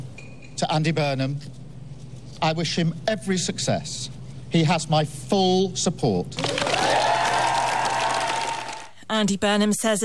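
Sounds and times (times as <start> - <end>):
speech: 0.6 - 1.6, 2.4 - 6.6, 9.1 - 10.0
crowd clapping as Keir Starmer leaves Downing Street: 6.4 - 8.9.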